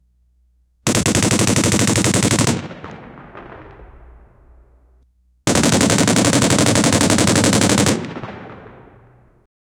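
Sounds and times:
machine gun firing: 0.9 - 4.4, 5.5 - 9.3.

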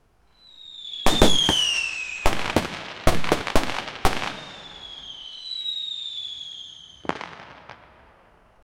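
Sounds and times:
fireworks: 0.4 - 8.6.

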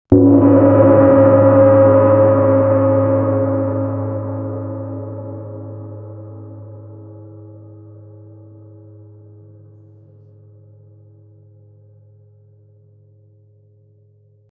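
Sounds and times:
musical instrument struck with a strong blow: 0.1 - 7.8.

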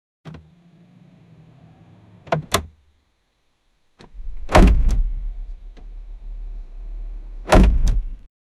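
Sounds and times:
cars: 0.3 - 2.6, 4.0 - 8.3.

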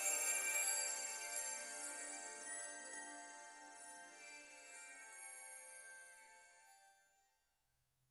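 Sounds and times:
magical fairy chimes: 0.0 - 3.9.

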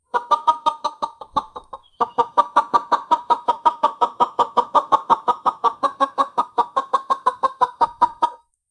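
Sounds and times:
chicken clucking: 0.0 - 8.4.

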